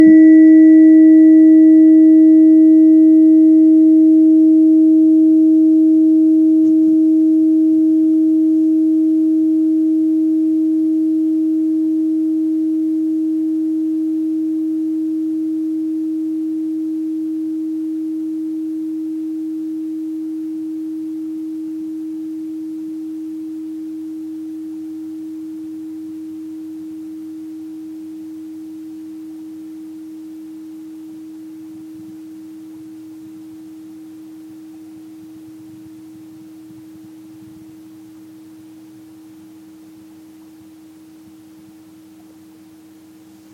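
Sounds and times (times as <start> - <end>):
tuning forks: 0.0 - 24.7.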